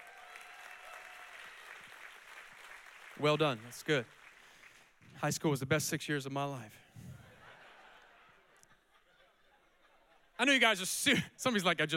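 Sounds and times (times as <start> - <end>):
audience clapping for graduates: 0.0 - 5.1
speech: 3.2 - 4.2, 5.2 - 7.1, 10.4 - 11.9
laughter: 7.0 - 10.4.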